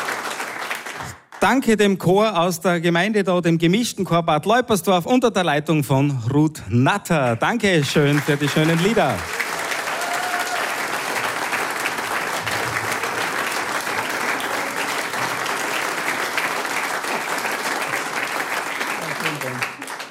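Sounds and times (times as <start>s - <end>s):
audience applause: 0.0s - 1.4s, 7.8s - 20.0s
speech: 1.0s - 9.4s.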